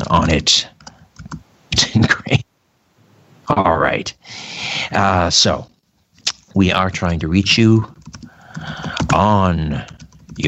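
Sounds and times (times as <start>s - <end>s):
typing a message on a computer keyboard: 0.1s - 1.4s, 6.9s - 10.4s
speech: 0.2s - 0.8s, 3.5s - 5.7s, 6.6s - 8.0s, 8.6s - 10.4s.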